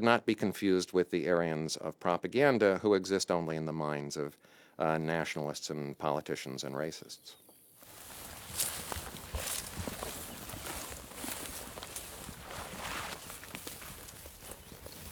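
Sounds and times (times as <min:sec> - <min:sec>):
speech: 0:00.0 - 0:07.4, 0:08.5 - 0:09.5
footsteps through grass and shrub on the steppe along the outer wall of Arkaim: 0:07.8 - 0:15.0.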